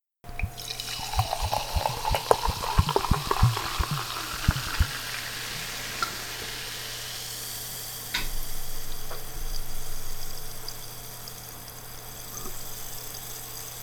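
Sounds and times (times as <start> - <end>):
carbonated drink pouring: 0.3 - 7.1.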